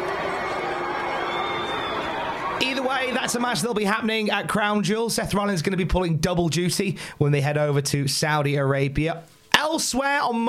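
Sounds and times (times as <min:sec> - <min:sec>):
large wrestling crowd noise: 0:00.0 - 0:04.5
whistles: 0:00.5 - 0:02.6
speech: 0:02.7 - 0:10.4.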